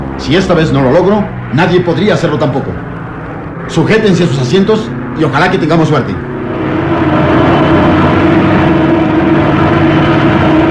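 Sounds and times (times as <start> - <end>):
light aircraft engine during descent: 0.0 - 10.6
speech: 0.3 - 2.9, 3.7 - 6.3.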